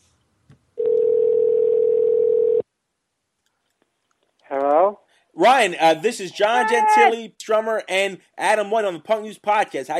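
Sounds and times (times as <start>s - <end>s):
telephone call ringing out: 0.8s - 2.6s
speech: 5.4s - 9.9s.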